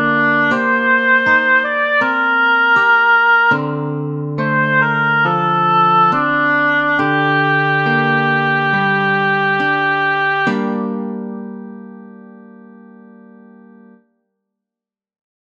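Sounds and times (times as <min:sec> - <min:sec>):
oboe: 0:00.0 - 0:11.4.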